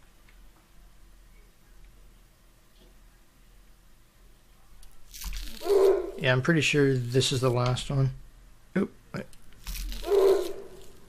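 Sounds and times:
plastic wrapper being crumpled: 5.1 - 6.0, 9.6 - 11.0
speech: 6.2 - 8.2, 8.8 - 9.4.

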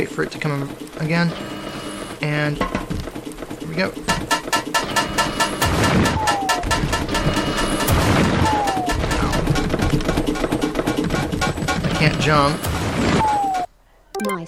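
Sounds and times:
speech: 0.0 - 2.8, 3.7 - 4.4, 12.0 - 13.3
cannon fire in a video game: 4.2 - 13.7.

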